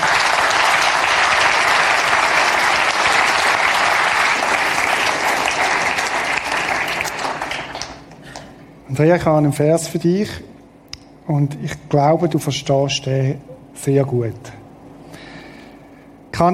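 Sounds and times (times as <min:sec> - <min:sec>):
audience applause: 0:00.0 - 0:08.2
speech: 0:09.0 - 0:10.5, 0:11.3 - 0:14.6, 0:16.4 - 0:16.5.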